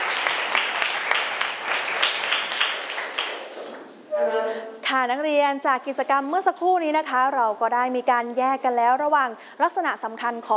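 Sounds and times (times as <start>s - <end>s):
group of students clapping: 0.0s - 3.7s
speech: 4.2s - 10.5s.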